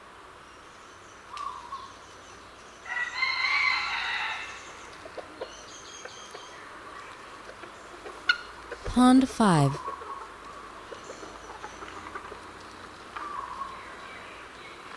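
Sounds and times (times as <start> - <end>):
red junglefowl crowing: 2.9 - 4.6
speech: 9.0 - 9.9.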